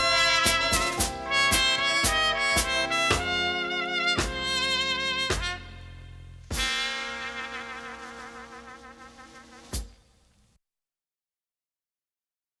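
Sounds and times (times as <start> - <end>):
dance rhythm tango with brass section: 0.0 - 10.0.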